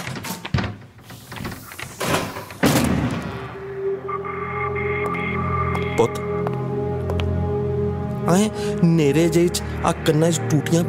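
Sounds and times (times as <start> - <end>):
heavy thuds of a door being forced and broken down: 0.0 - 3.5
sustained music: 3.2 - 10.8
speech: 6.0 - 6.3, 8.2 - 10.8.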